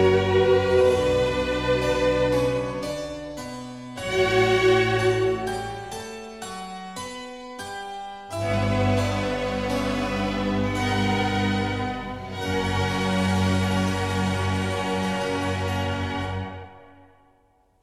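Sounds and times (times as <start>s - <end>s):
concerto grosso in D: 0.0s - 2.9s, 4.0s - 5.8s, 8.4s - 16.9s.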